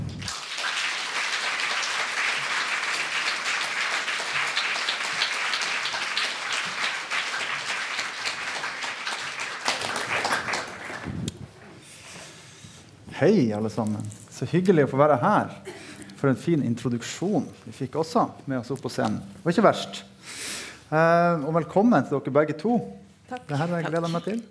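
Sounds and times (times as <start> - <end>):
audience applause: 0.0 - 11.3
speech: 13.2 - 20.1, 20.9 - 24.5.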